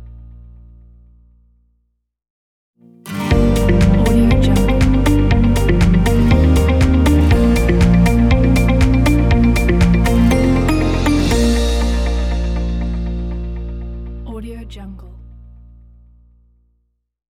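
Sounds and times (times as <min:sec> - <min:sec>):
commercial corporate logo jingle: 0:03.3 - 0:14.3.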